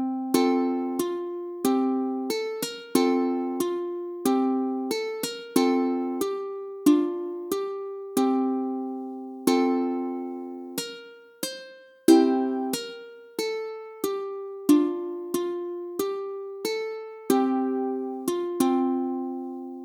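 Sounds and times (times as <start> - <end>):
ukulele playing an anthem melody: 0.0 - 19.8.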